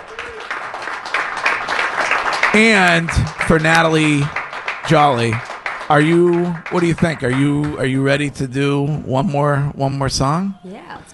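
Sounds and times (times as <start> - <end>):
audience clapping for a Christmas-themed musical performer: 0.0 - 8.5
speech: 2.5 - 11.1.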